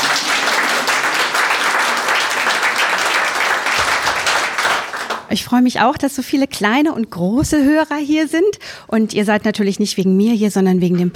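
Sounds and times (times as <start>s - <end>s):
audience clapping: 0.0s - 5.4s
speech: 5.3s - 11.1s.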